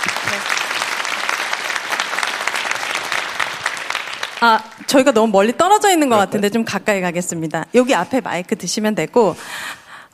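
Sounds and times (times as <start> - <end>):
audience applause: 0.0 - 5.1
speech: 4.4 - 9.8.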